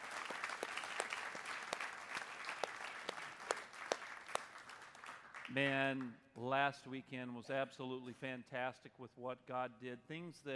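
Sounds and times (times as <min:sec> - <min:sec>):
audience hand clapping: 0:00.0 - 0:06.1
speech: 0:05.5 - 0:10.5.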